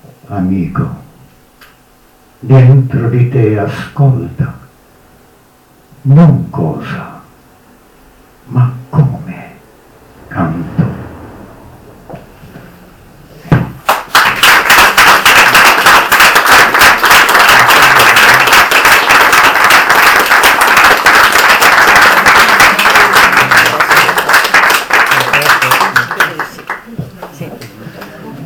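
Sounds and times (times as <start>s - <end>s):
speech: 0.3s - 1.0s, 2.4s - 4.6s, 6.0s - 7.1s, 8.5s - 9.0s
crowd applause: 13.8s - 28.4s.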